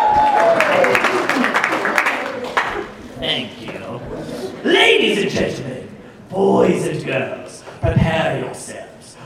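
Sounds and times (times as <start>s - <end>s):
audience applause: 0.0s - 3.0s
crowd voices: 0.0s - 9.0s.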